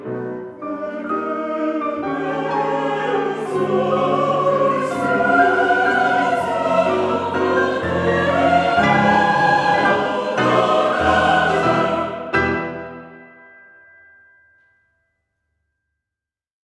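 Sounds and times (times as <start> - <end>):
four-voice vocal chanson: 0.0 - 12.5.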